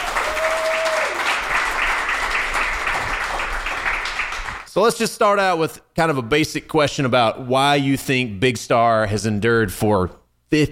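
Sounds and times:
audience applause: 0.0s - 4.7s
speech: 4.8s - 10.7s.

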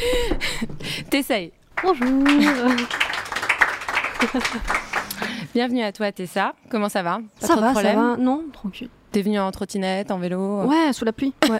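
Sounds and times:
speech: 1.1s - 3.0s, 4.2s - 4.8s, 5.5s - 11.5s
applause: 1.7s - 5.4s
laughter: 2.0s - 3.0s, 3.9s - 5.4s.

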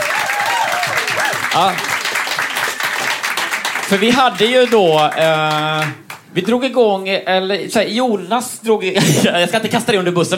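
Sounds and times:
audience applause for contest winner: 0.0s - 6.3s
speech: 1.6s - 1.9s, 3.9s - 10.3s.

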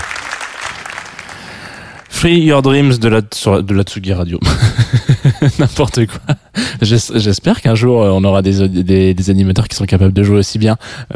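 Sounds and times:
applause: 0.0s - 2.3s
speech: 2.2s - 11.1s
laughter: 4.4s - 6.3s.

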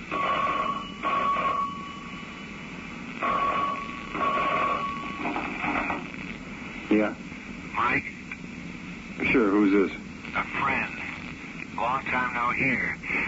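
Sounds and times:
hiss: 0.0s - 13.2s
telephone ringing: 0.1s - 2.3s, 3.2s - 5.6s
speech: 6.9s - 7.2s, 9.4s - 10.0s.

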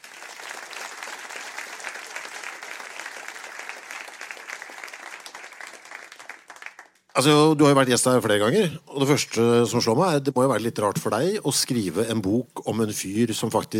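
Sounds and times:
steady audience applause: 0.0s - 7.4s
speech: 7.2s - 13.7s.

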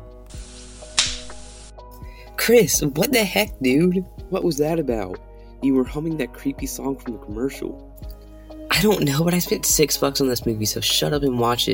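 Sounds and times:
brief hiss: 0.3s - 1.9s
slap to the face: 0.9s - 1.4s
speech: 2.4s - 7.9s, 8.8s - 11.7s.

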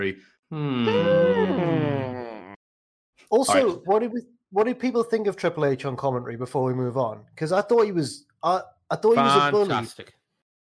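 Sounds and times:
speech: 0.0s - 2.1s, 3.3s - 10.2s
people humming in unison: 0.5s - 2.4s.

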